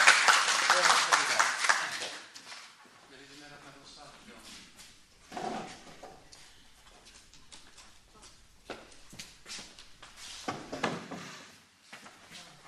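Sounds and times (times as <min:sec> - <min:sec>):
loud audience applause: 0:00.0 - 0:02.3.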